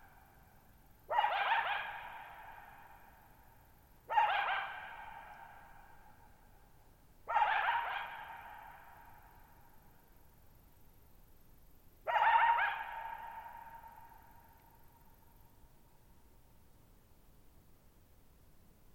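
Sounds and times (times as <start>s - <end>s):
coyote barking: 1.1s - 3.1s, 4.1s - 6.0s, 7.2s - 9.3s, 12.1s - 14.6s.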